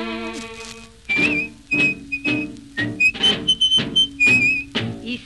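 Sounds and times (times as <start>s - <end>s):
punchy rhythmic accompaniment: 0.5s - 5.1s
high thin whistled melody: 1.1s - 4.8s.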